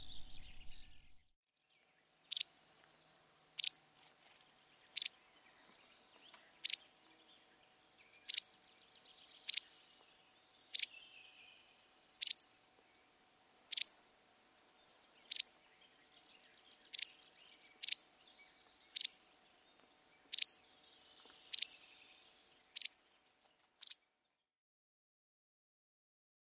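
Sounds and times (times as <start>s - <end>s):
white wagtail calling tsi-lit: 2.3s - 2.6s, 3.6s - 3.8s, 4.8s - 5.2s, 6.5s - 6.9s, 8.2s - 9.8s, 10.7s - 11.1s, 12.2s - 12.5s, 13.7s - 14.0s, 15.3s - 15.6s, 16.4s - 18.1s, 18.9s - 19.2s, 20.2s - 20.6s, 21.4s - 21.9s, 22.7s - 23.0s, 23.8s - 24.0s.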